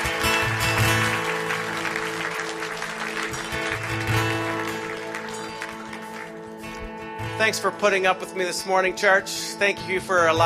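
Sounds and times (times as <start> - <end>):
audience clapping: 0.0 - 7.7
speech: 7.4 - 10.4.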